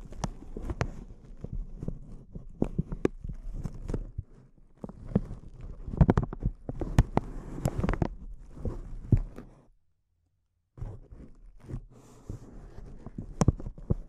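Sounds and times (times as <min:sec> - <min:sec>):
crinkling crackles and pops: 0:00.0 - 0:09.7, 0:10.8 - 0:14.0.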